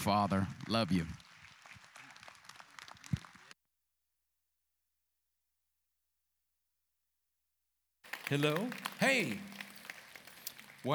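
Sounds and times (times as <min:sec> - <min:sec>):
speech: 0:00.0 - 0:01.2, 0:08.3 - 0:09.5
church audience applauding a pastor's entrance: 0:00.0 - 0:03.6, 0:08.0 - 0:10.9.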